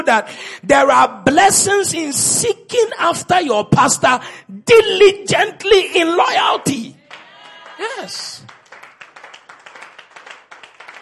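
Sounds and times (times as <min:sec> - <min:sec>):
speech: 0:00.0 - 0:07.0, 0:07.8 - 0:08.5
audience clapping in a steady rapid rhythm: 0:07.0 - 0:11.0.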